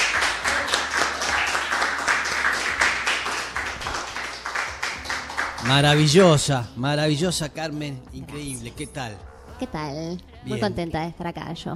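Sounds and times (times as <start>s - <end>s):
audience applause: 0.0s - 6.5s
speech: 5.7s - 11.7s.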